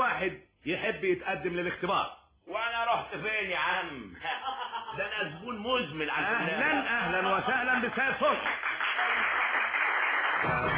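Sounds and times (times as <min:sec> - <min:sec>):
speech: 0:00.2 - 0:08.7, 0:10.4 - 0:10.7
laughter: 0:04.2 - 0:05.5, 0:06.2 - 0:09.2
audience applauding a contestant on a quiz show: 0:07.5 - 0:10.7.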